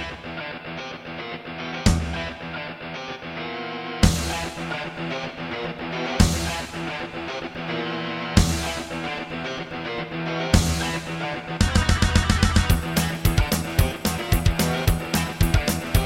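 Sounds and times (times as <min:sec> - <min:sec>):
Alesis NanoSynth synthesizer: 0:01.8 - 0:16.0.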